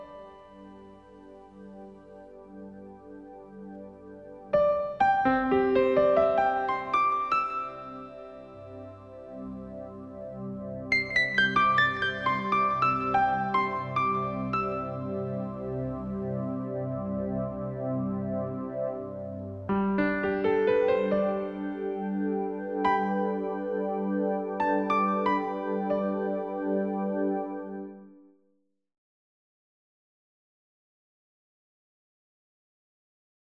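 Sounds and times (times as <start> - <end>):
easy listening and classical music: 4.5 - 28.0.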